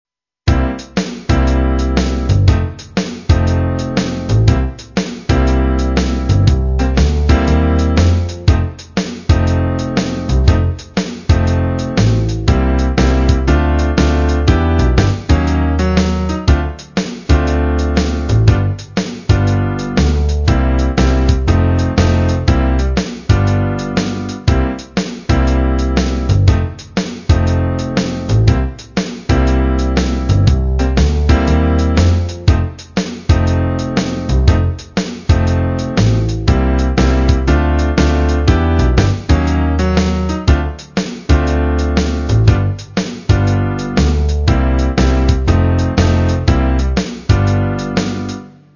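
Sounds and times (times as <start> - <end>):
blues music: 0.5 - 48.7.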